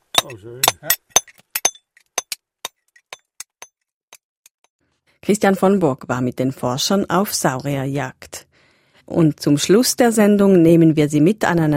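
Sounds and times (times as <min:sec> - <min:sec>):
chisel striking rock plates during a search for dinosaur fossils: 0:00.0 - 0:04.3
speech: 0:00.2 - 0:01.0, 0:05.3 - 0:08.5, 0:09.1 - 0:11.7.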